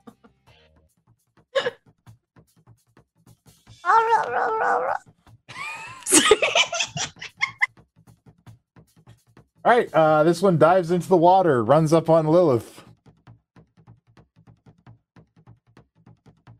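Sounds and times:
person vocally imitating shark noises: 3.8s - 5.0s
speech: 3.9s - 5.1s, 9.6s - 12.8s
laughter: 5.5s - 7.7s.

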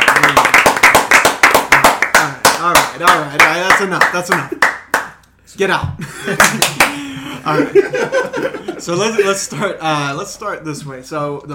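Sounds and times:
audience clapping: 0.0s - 5.2s, 6.4s - 7.1s
speech: 3.0s - 4.6s, 5.5s - 11.5s
laughter: 6.0s - 9.8s.

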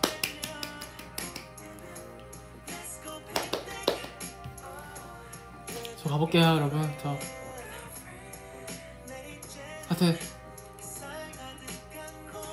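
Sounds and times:
sharp irregular hand claps: 0.0s - 1.7s, 3.3s - 4.6s
steady tonal musical background: 0.0s - 12.5s
speech: 6.1s - 7.4s, 10.0s - 10.3s.

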